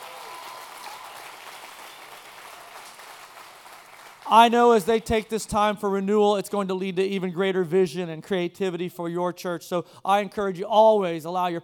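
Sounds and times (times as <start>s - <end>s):
audience applause: 0.0s - 4.4s
speech: 4.3s - 11.6s.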